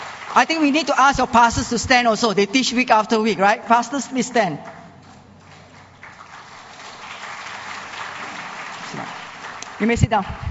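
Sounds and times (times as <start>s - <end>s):
audience clapping: 0.0s - 2.2s, 4.4s - 10.4s
speech: 0.4s - 4.7s, 9.8s - 10.4s.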